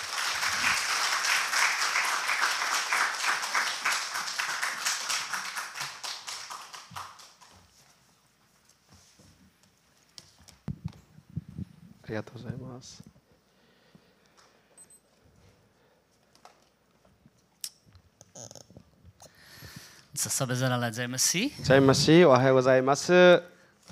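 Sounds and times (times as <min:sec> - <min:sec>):
crowd applauding: 0:00.0 - 0:07.6
speech: 0:12.1 - 0:13.2, 0:20.3 - 0:23.5.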